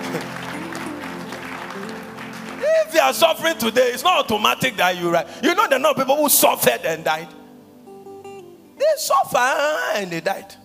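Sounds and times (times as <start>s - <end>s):
audience clapping: 0.0s - 4.8s
speech: 2.9s - 7.4s, 8.9s - 10.6s.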